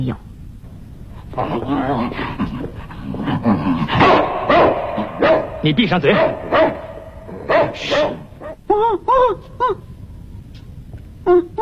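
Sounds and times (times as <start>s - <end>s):
speech: 0.0s - 0.3s, 1.3s - 6.9s, 7.6s - 9.9s, 11.3s - 11.6s
dog barking in a room: 3.9s - 8.6s.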